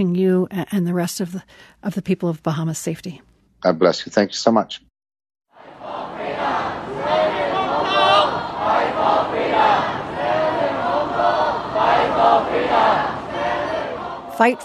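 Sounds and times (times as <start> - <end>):
speech: 0.0 - 4.9, 14.4 - 14.6
protesters chanting in a crowd: 5.5 - 14.6.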